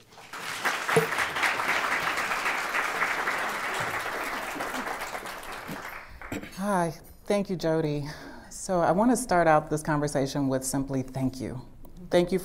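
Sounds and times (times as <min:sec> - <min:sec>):
audience applause welcoming panelists at a City Club of Cleveland event: 0:00.0 - 0:06.5
speech: 0:06.6 - 0:12.4.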